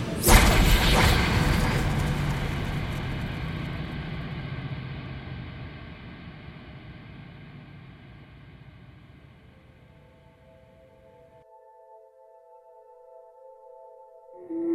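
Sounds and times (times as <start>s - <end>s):
Hellfire torpedo launching: 0.0s - 7.2s.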